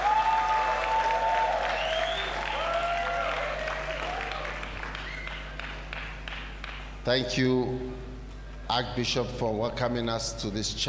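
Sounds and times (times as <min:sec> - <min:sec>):
audience applause: 0:00.0 - 0:06.9
speech: 0:07.1 - 0:08.0, 0:08.7 - 0:10.8.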